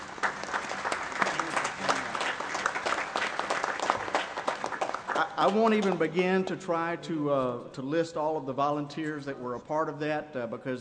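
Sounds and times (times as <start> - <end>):
audience applause: 0.0 - 6.1
speech: 5.4 - 10.7.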